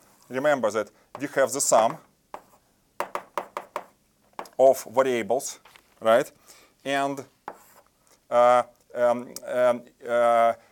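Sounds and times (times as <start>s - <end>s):
speech: 0.3s - 2.1s, 4.6s - 7.4s, 8.3s - 10.7s
chalk tapping on a board during a lecture: 1.1s - 4.5s, 7.4s - 7.8s.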